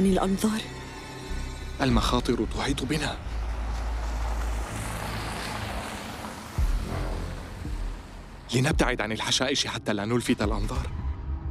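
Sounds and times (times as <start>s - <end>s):
speech: 0.0s - 0.8s, 1.8s - 3.4s, 8.5s - 11.0s
car driving past: 2.6s - 8.5s.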